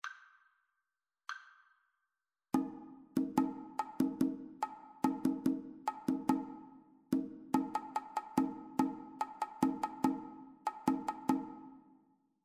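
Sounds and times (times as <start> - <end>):
two-part rhythm: 2.6 - 11.6.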